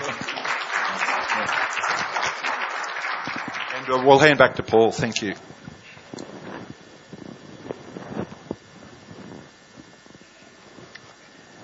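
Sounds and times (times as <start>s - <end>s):
audience clapping: 0.0s - 4.8s
speech: 3.9s - 5.6s.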